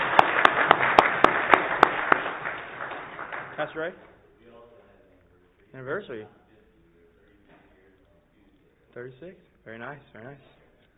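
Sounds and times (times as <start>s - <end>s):
audience applauding: 0.0s - 4.0s
speech: 3.6s - 4.2s, 5.7s - 6.4s, 9.0s - 10.6s.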